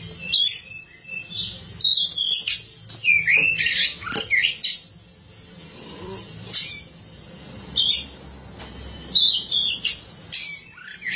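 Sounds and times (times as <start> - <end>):
Oriental magpie-robin song: 0.0 - 4.9, 6.5 - 7.0, 7.8 - 8.2, 9.1 - 11.1.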